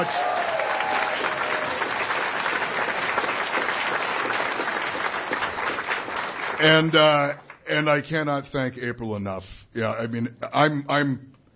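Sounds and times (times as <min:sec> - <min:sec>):
speech: 0:00.0 - 0:00.2, 0:06.6 - 0:11.3
round of applause: 0:00.0 - 0:07.7.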